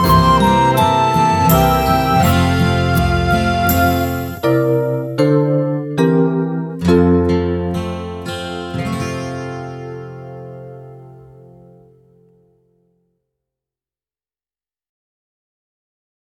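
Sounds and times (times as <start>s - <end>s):
recorder melody: 0.0s - 9.0s.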